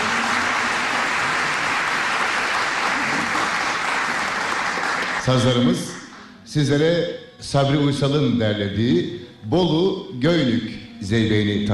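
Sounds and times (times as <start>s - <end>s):
applause for Turkish folk music saz players: 0.0s - 6.3s
speech: 5.3s - 5.9s, 6.5s - 11.7s.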